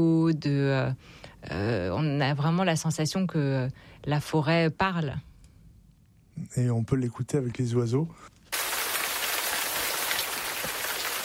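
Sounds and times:
speech: 0.0 - 5.3, 6.4 - 8.3
tropical rain falling: 8.5 - 11.2.

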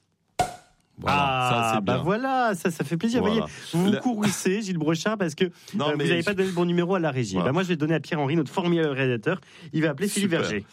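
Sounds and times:
champagne uncorked: 0.4 - 0.8
speech: 1.0 - 10.7.

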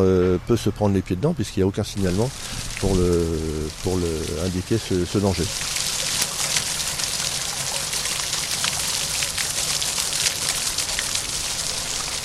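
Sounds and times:
speech: 0.0 - 5.8
water jets of the place Gambetta public square fountain: 2.0 - 12.2.

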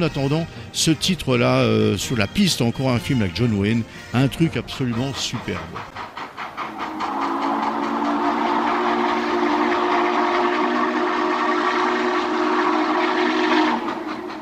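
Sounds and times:
speech: 0.0 - 6.1
steam train running: 0.0 - 14.3
steam train whistle: 6.7 - 14.3.

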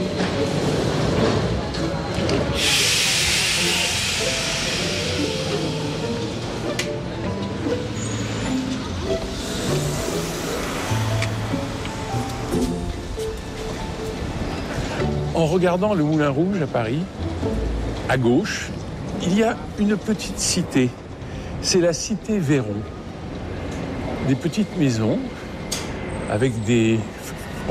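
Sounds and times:
Paris Métro train rumbling and rattling at Place de Clichy station: 0.0 - 27.6
Paris Métro train hissing air burst: 2.5 - 6.7
Paris Métro train clanks and squeals: 7.8 - 9.8
speech: 15.5 - 21.0, 21.6 - 23.0, 24.3 - 25.4, 26.3 - 27.6.

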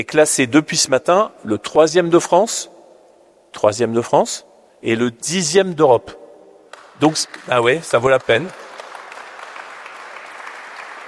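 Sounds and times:
speech: 0.0 - 2.8, 3.6 - 6.2, 7.0 - 8.6
audience applause at a business school event: 6.8 - 11.0.

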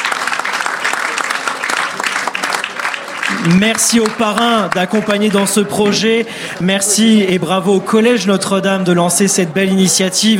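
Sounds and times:
audience clapping for students: 0.0 - 5.8
speech: 3.4 - 10.3.

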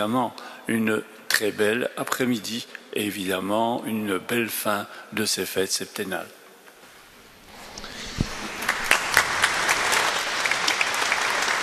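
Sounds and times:
speech: 0.0 - 6.4
audience applause in a church: 7.5 - 11.6.

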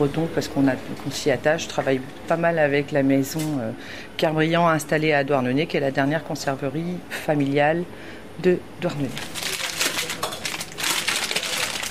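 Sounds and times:
speech: 0.0 - 9.4
products unpacked in a cheese shop: 9.2 - 11.9.

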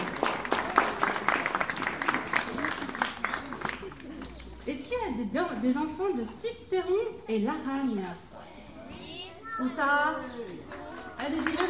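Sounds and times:
audience applauding children: 0.0 - 4.6, 10.7 - 11.6
speech: 5.2 - 8.3, 9.6 - 11.6.

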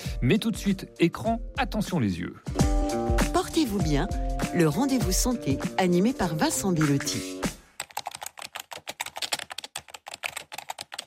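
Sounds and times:
speech: 0.2 - 2.6, 3.6 - 7.4
fingers typing on a computer keyboard: 7.8 - 11.0.

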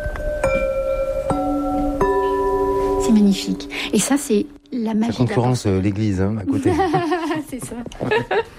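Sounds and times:
porcelain pieces tapped ringing with a crystalline tone: 0.0 - 4.7
speech: 3.1 - 8.5
laughter: 6.4 - 8.5.

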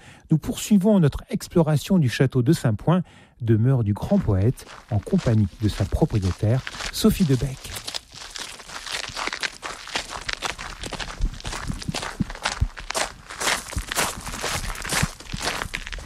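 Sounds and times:
speech: 0.3 - 7.9
footsteps on a tiny tower staircase in Saint-Point castle: 4.2 - 16.0.

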